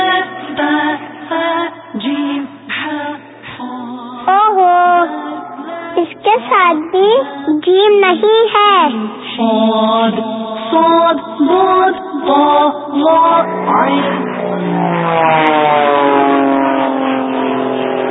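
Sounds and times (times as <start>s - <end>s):
airplane approaching: 0.0s - 7.5s, 10.6s - 18.1s
speech: 7.7s - 16.5s.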